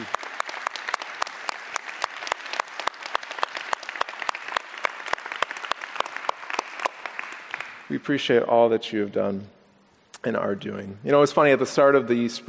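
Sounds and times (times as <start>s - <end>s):
audience applause: 0.0s - 7.9s
speech: 7.9s - 9.6s, 10.2s - 12.4s.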